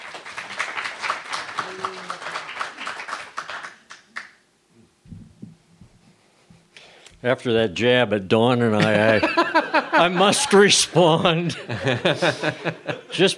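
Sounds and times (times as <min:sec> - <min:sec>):
audience applause: 0:00.0 - 0:04.4
soft low thumps: 0:04.8 - 0:06.7
speech: 0:07.2 - 0:13.3
laughter: 0:08.8 - 0:13.3.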